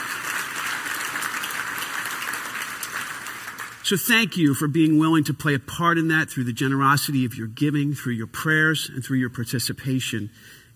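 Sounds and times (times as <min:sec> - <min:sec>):
audience applause: 0:00.0 - 0:03.9
speech: 0:03.9 - 0:10.7.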